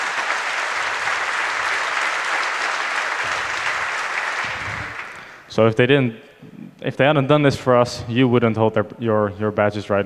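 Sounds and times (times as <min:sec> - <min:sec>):
audience applause: 0:00.0 - 0:05.5
speech: 0:05.6 - 0:10.0.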